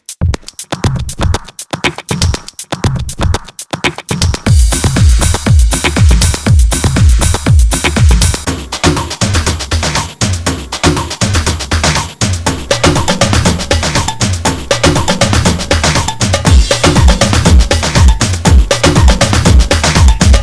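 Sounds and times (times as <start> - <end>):
kick drum: 0.1 - 20.4.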